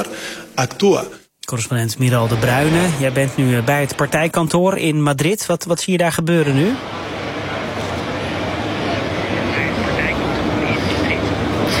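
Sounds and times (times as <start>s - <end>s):
speech: 0.0s - 7.0s
traffic on a busy road in Madrid: 6.5s - 11.7s.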